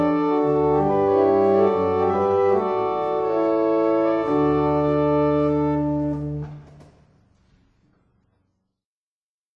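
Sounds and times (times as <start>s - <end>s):
barrel organ playing a hymn: 0.0s - 6.8s.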